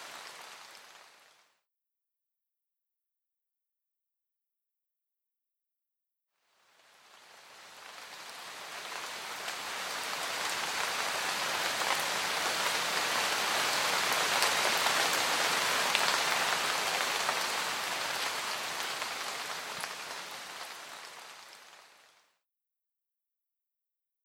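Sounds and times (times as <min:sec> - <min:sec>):
rain: 0:00.0 - 0:01.5, 0:06.6 - 0:22.2.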